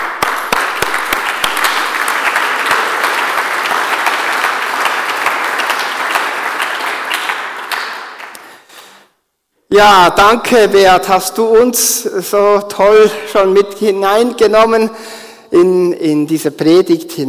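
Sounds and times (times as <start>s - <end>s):
audience applause: 0.0s - 8.7s
speech: 9.8s - 17.2s.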